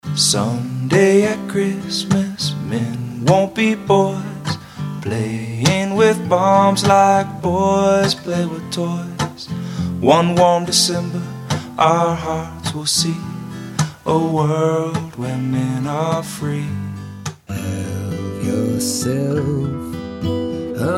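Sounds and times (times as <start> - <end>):
holiday acoustic music: 0.0 - 20.9.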